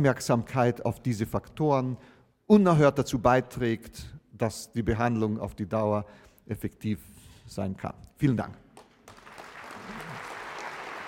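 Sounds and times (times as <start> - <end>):
speech: 0.0 - 8.6
crowd applause: 9.0 - 11.0.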